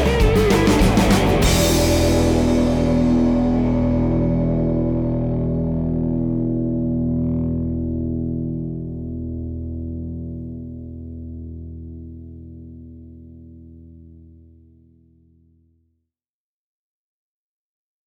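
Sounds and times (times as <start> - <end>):
blues music: 0.0 - 10.3.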